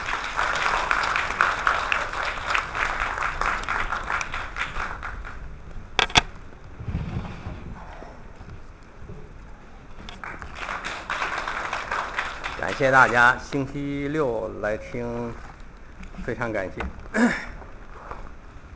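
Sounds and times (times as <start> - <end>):
audience applause welcoming lecturer: 0.0 - 5.6, 10.1 - 13.6
speech: 12.8 - 15.5, 16.2 - 17.5.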